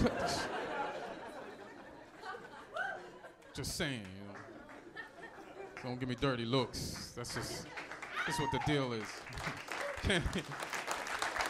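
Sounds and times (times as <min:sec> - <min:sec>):
laughter: 0:00.0 - 0:03.7, 0:04.3 - 0:06.0
audience clapping at a stand-up comedy show: 0:03.4 - 0:11.4
speech: 0:03.6 - 0:04.2, 0:05.8 - 0:10.7.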